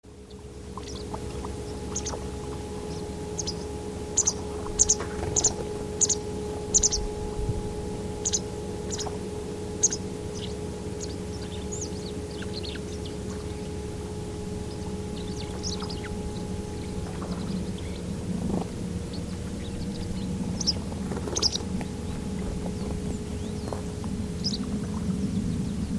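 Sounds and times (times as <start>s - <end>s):
White wagtail giving brief high chirping calls: 0.1s - 25.9s.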